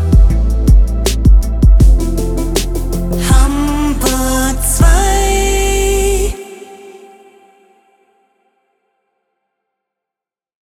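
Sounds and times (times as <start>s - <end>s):
slow theme music: 0.0s - 7.6s.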